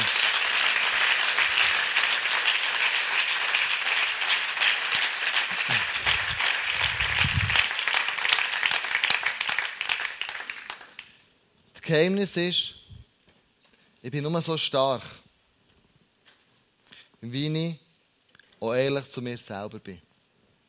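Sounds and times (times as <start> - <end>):
audience applause: 0.0 - 11.1
speech: 11.9 - 12.8, 14.0 - 15.2, 17.3 - 17.8, 18.6 - 20.1.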